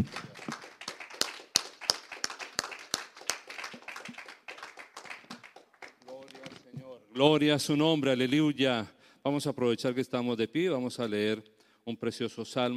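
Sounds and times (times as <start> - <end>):
audience clapping: 0.0 - 6.6
speech: 7.2 - 12.7.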